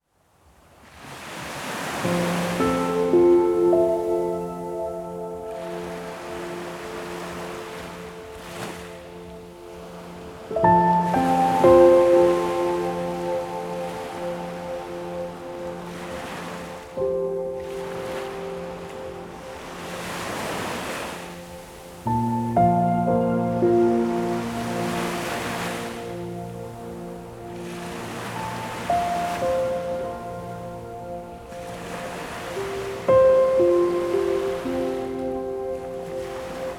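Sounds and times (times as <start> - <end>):
ocean sounds: 0.8 - 36.7
piano: 1.6 - 36.7.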